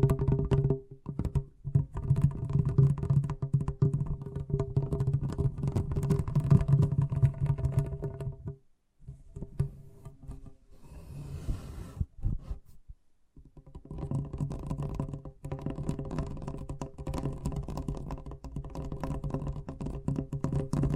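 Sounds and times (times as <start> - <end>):
fast tapping: 0.0 - 8.6, 13.4 - 20.9.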